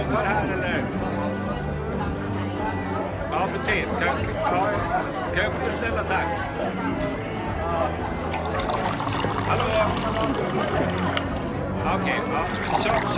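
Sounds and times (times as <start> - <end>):
many overlapping voices in a bar: 0.0 - 13.1
glasses or dishes clinking: 8.3 - 11.6.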